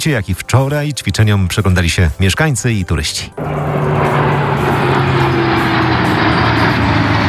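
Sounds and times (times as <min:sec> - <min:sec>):
speech: 0:00.0 - 0:04.4
low hum: 0:03.4 - 0:07.2
military jet aircraft passing overhead: 0:03.4 - 0:07.2.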